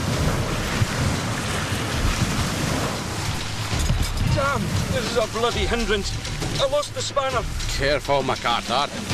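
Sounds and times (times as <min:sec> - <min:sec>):
storm wave rolling in over the landing: 0:00.0 - 0:06.8
speech: 0:04.6 - 0:09.1.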